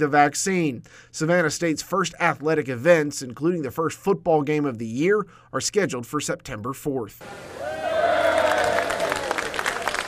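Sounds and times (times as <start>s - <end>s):
speech: 0.0s - 7.7s
murmur of voices and cheering: 7.2s - 10.0s
applause from city leaders and attendees: 7.6s - 10.0s.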